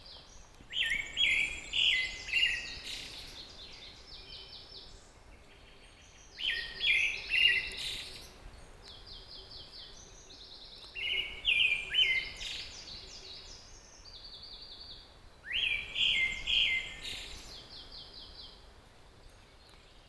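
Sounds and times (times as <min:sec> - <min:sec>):
Pale thrush Turdus pallidus song of whistled notes and twitters: 0:00.7 - 0:05.0, 0:06.2 - 0:08.3, 0:08.9 - 0:18.5.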